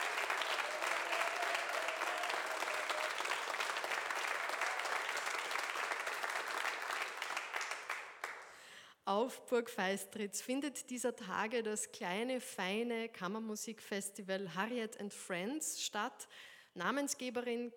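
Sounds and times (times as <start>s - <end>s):
studio audience applause: 0.0s - 8.6s
speech: 9.1s - 17.7s.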